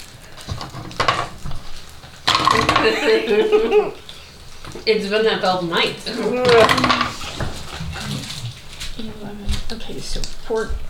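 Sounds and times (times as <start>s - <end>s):
dice rolling on a hard table: 2.3s - 3.0s, 6.4s - 7.6s
speech: 2.8s - 4.0s, 4.8s - 7.0s, 9.9s - 10.8s
laughter: 2.8s - 4.1s.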